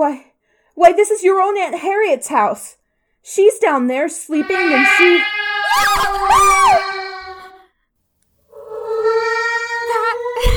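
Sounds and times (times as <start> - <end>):
speech: 0.0 - 6.9
cat: 4.4 - 7.7, 8.5 - 10.5.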